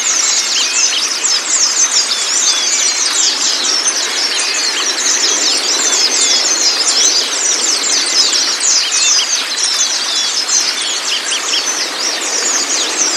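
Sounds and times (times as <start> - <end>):
white-eye chattering in high twitters: 0.0 - 13.1.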